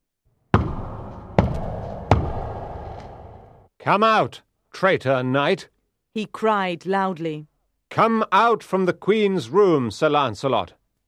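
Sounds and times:
heavy banging on a wooden door: 0.6s - 2.6s
speech: 3.8s - 10.8s.

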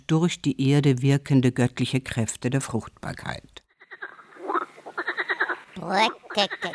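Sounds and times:
speech: 0.1s - 3.6s, 5.8s - 6.7s
frog croaking in rhythmic bursts of rasping pulses: 3.7s - 6.7s.

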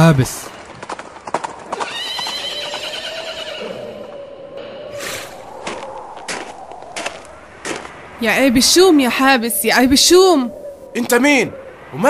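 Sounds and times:
horse hooves approaching: 0.0s - 8.8s
speech: 0.1s - 0.6s, 8.2s - 12.0s.

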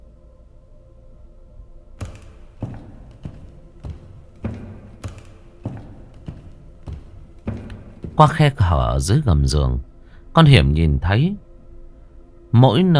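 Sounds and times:
low hum: 0.0s - 12.9s
wooden clog footsteps: 2.0s - 9.8s
speech: 8.2s - 11.4s, 12.5s - 12.9s.

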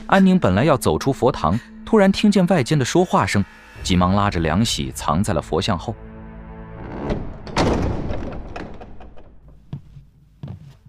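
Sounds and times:
speech: 0.1s - 6.1s
Buddhist hall door creaking open: 6.5s - 9.7s.

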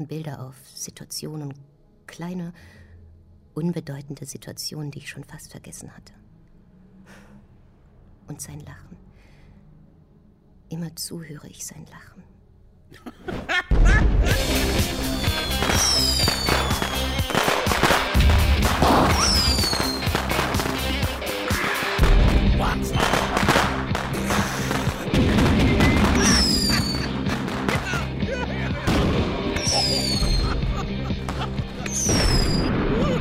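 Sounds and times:
speech: 0.0s - 2.8s, 3.6s - 6.2s, 8.3s - 9.1s, 10.7s - 12.3s
laughter: 12.9s - 15.2s, 22.8s - 25.2s, 26.1s - 33.1s
whistling streaks of stage pyrotechnics: 15.1s - 17.5s, 19.1s - 20.1s, 25.7s - 27.1s, 29.6s - 30.5s, 31.9s - 32.7s
stage pyrotechnics bangs and booms at an open-air mountain stage: 15.4s - 20.8s, 22.0s - 30.4s, 31.3s - 33.1s.

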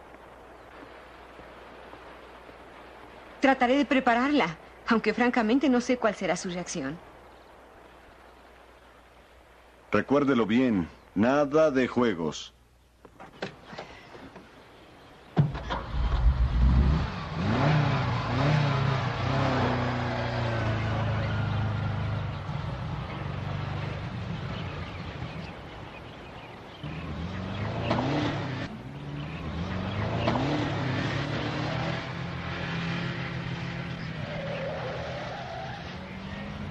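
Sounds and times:
speech: 3.4s - 7.1s, 9.9s - 12.6s
car engine revving and driving: 15.6s - 24.0s, 26.8s - 36.6s.

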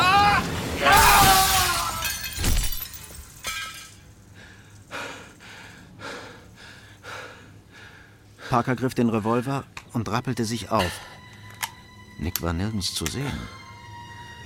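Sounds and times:
glass shattering as a man is pushed through a window: 0.9s - 4.1s
speech: 8.5s - 11.1s, 12.2s - 13.6s.

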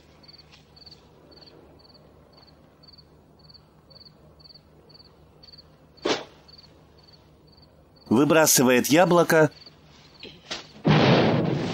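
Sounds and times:
speech: 8.2s - 9.6s
distant explosion with deep rumble: 10.8s - 11.7s.

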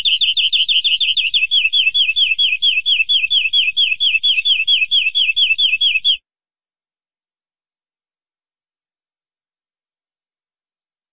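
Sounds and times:
canary singing: 0.0s - 6.2s.

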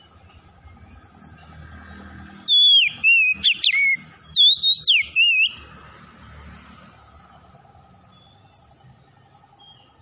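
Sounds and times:
Oriental magpie-robin singing whistled notes: 2.4s - 5.6s.

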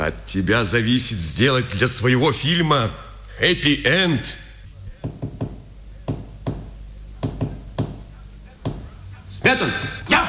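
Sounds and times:
speech: 0.1s - 4.4s, 9.5s - 10.0s
knocking code tapped on a prison wall: 5.0s - 8.9s.

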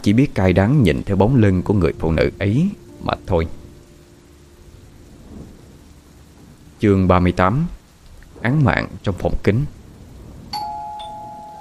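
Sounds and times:
speech: 0.0s - 3.6s, 6.8s - 7.8s, 8.4s - 9.8s
doorbell ringing: 10.6s - 11.5s.

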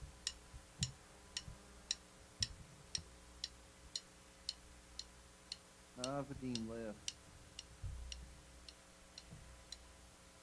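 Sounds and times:
clock ticking while its date is set: 0.2s - 9.9s
speech: 6.0s - 7.2s
soft low thumps of handling: 7.8s - 8.3s.

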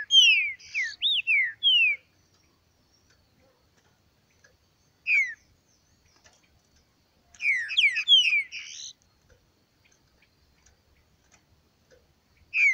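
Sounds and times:
green-winged saltator song of downslurred whistled notes: 0.0s - 3.1s, 5.0s - 5.9s, 7.4s - 9.0s, 12.4s - 12.7s.

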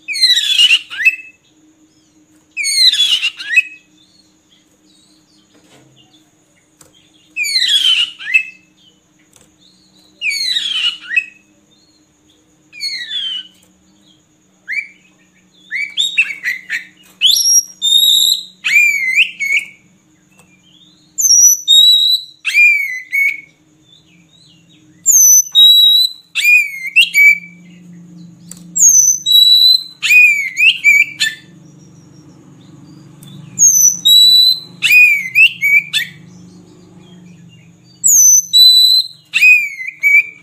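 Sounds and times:
Oriental magpie-robin singing: 0.0s - 1.5s, 2.6s - 4.4s, 7.3s - 8.7s, 9.9s - 12.0s, 12.7s - 13.7s, 14.6s - 19.8s, 20.6s - 27.9s, 28.5s - 40.4s
faint low hum: 0.0s - 40.4s.

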